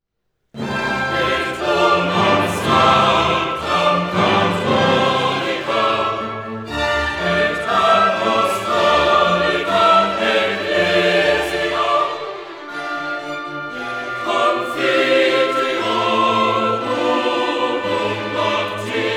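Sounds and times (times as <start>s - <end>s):
choral chant: 0.6s - 19.1s.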